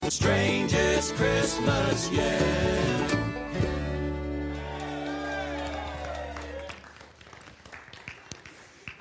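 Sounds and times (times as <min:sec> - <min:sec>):
speech: 0:00.1 - 0:03.7
audience applause: 0:04.3 - 0:08.9.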